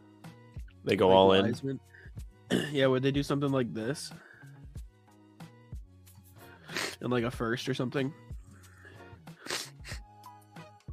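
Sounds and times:
speech: 0.8 - 4.3, 7.0 - 8.2
sneeze: 9.4 - 10.0.

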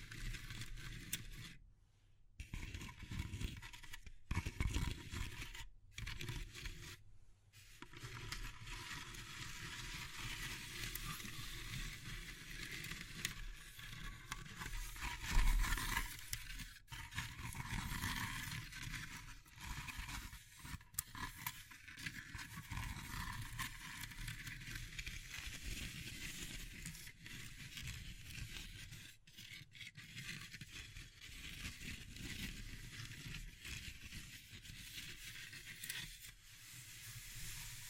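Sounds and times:
small knocks and scratches: 0.0 - 1.6, 2.4 - 37.8
wood, bamboo and straw being handled, rustling: 35.8 - 37.8.

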